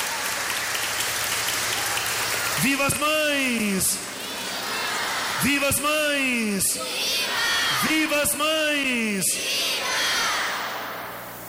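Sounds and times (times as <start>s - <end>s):
applause for the mothers: 0.0s - 5.1s
speech: 2.6s - 4.1s, 5.4s - 10.1s.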